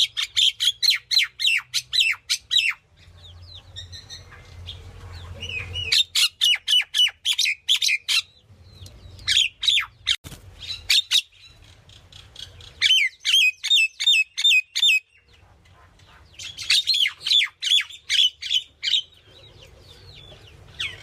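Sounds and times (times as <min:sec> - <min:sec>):
myna bird: 0:00.0 - 0:21.0.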